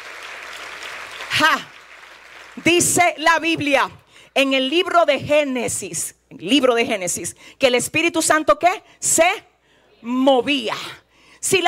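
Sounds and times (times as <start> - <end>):
audience applause: 0.0 - 2.8
speech: 1.4 - 1.8, 2.6 - 11.6.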